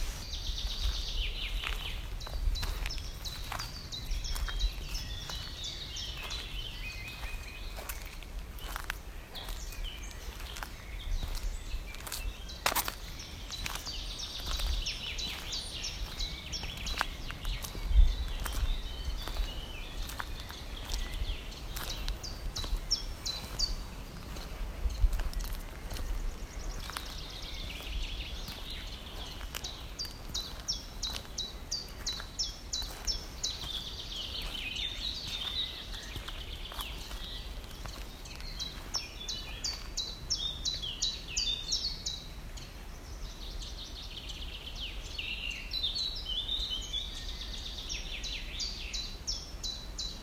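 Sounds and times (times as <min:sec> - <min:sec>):
birds chirping in a woodland: 0:00.0 - 0:50.2.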